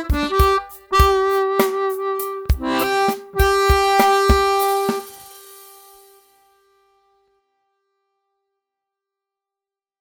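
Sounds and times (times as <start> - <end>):
slow harmonica riff: 0.0 - 6.2.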